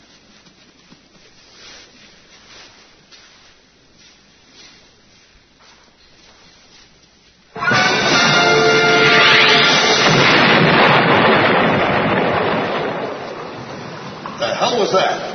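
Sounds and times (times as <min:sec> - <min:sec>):
explosion blowing the roof off the Institute building: 0:07.9 - 0:14.6.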